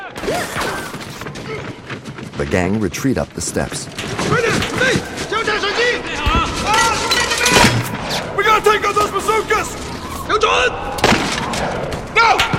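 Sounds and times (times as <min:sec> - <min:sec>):
gunfire and exploding bazookas in a firefight: 0:00.0 - 0:12.5
speech: 0:02.4 - 0:05.1, 0:08.6 - 0:12.5.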